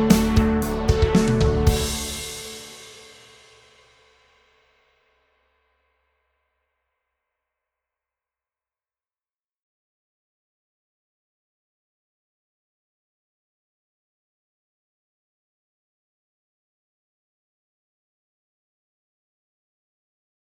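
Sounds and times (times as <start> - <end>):
80s synth effect riser: 0.0 - 3.1.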